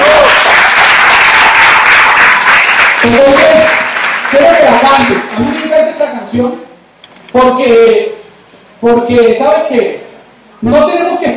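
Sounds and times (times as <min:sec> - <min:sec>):
audience applause: 0:00.0 - 0:05.3
speech: 0:05.0 - 0:06.7, 0:07.3 - 0:08.2, 0:08.8 - 0:10.0, 0:10.6 - 0:11.3.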